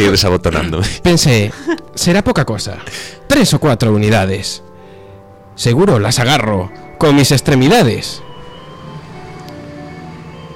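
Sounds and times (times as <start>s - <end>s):
speech: 0.0s - 4.7s, 5.6s - 8.3s
cars passing in street traffic: 8.2s - 10.5s.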